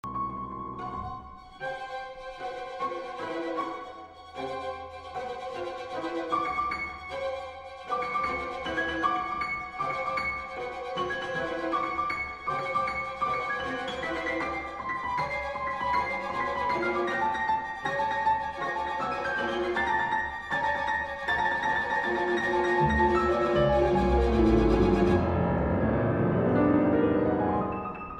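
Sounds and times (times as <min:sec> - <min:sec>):
piano concerto: 0:00.0 - 0:28.1.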